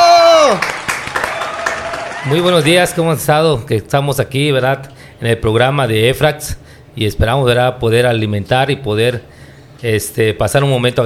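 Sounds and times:
applause: 0.4s - 3.0s
speech: 2.2s - 11.0s.

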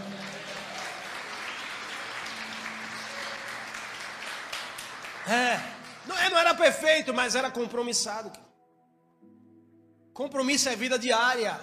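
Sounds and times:
audience applause: 0.0s - 6.7s
speech: 5.2s - 8.5s, 10.2s - 11.6s.

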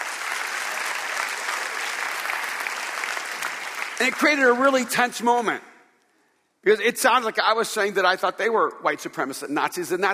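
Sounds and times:
audience clapping: 0.0s - 5.2s
speech: 4.0s - 5.7s, 6.6s - 10.1s.

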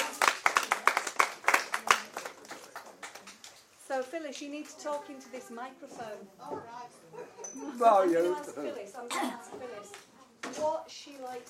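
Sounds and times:
audience clapping: 0.0s - 3.7s
speech: 4.0s - 11.4s.

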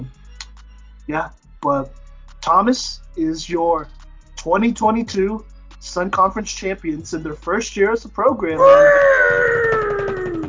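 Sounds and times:
speech: 1.1s - 9.8s
man cheering: 8.5s - 10.4s.

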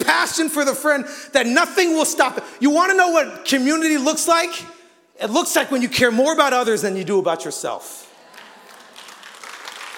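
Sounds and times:
speech: 0.4s - 8.1s
audience clapping: 8.1s - 9.9s.

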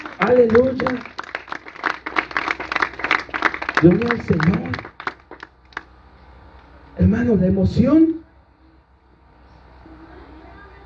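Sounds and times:
crowd applause: 0.0s - 5.9s
speech: 0.3s - 1.1s, 3.8s - 4.9s, 7.1s - 8.2s.

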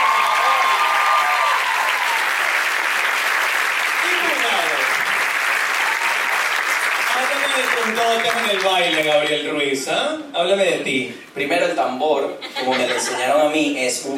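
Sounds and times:
audience applause: 0.0s - 9.4s
speech: 7.6s - 14.1s
laughter: 12.4s - 13.6s.

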